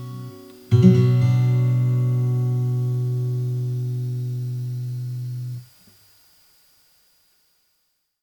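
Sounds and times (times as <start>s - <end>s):
custom D-28 guitar: 0.0s - 5.7s.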